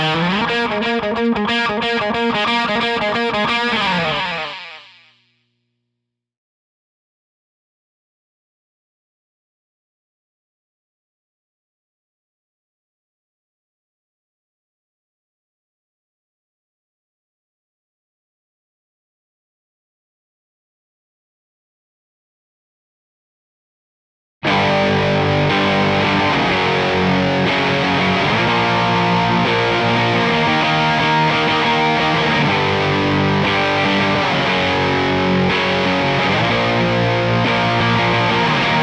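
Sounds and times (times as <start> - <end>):
bass guitar: 0.0 - 5.0, 24.4 - 38.8.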